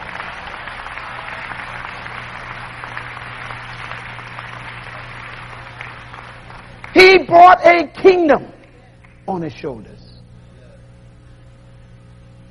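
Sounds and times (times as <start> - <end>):
audience clapping hands: 0.0 - 7.6, 8.6 - 9.3
faint low hum: 0.0 - 12.4
speech: 7.3 - 8.5, 9.3 - 10.1.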